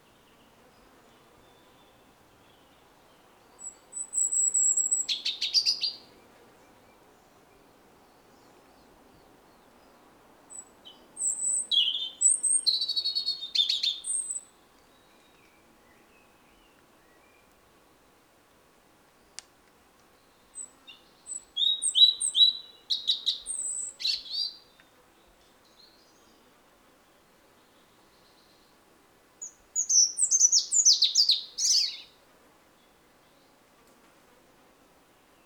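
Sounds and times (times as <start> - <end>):
European robin song: 0.0 - 17.6, 20.2 - 24.9, 29.4 - 32.2.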